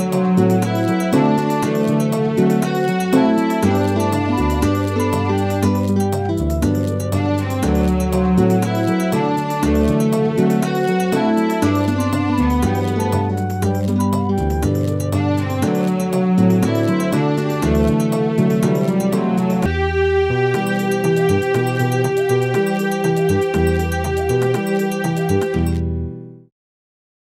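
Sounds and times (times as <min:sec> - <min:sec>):
Brazilian carnival music from Bahia: 0:00.0 - 0:25.8.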